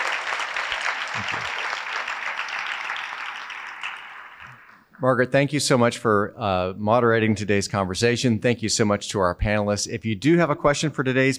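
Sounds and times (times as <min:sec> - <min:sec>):
round of applause from many hands: 0:00.0 - 0:05.0
speech: 0:01.2 - 0:01.8, 0:05.0 - 0:11.3.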